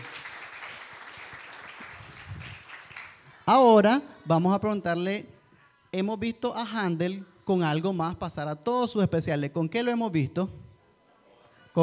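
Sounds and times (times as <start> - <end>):
audience applause: 0.0 - 3.3
speech: 3.5 - 5.3, 5.9 - 10.6.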